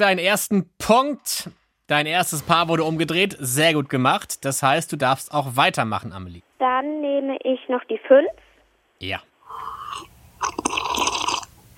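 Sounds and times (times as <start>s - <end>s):
speech: 0.0s - 8.4s, 9.0s - 9.3s
someone drinking, gulping and swallowing: 9.5s - 11.7s.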